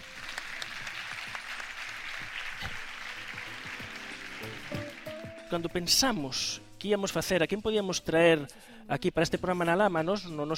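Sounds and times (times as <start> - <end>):
audience applause: 0.0 - 5.5
speech: 5.5 - 10.5.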